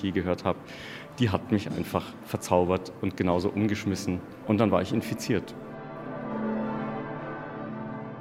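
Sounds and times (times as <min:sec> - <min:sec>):
speech: 0:00.0 - 0:05.7
500-year-old church bells ringing: 0:03.3 - 0:08.2.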